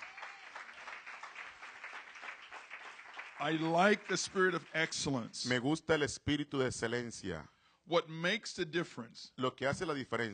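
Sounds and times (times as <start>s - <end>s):
audience applause: 0.0s - 5.2s
speech: 3.4s - 10.3s.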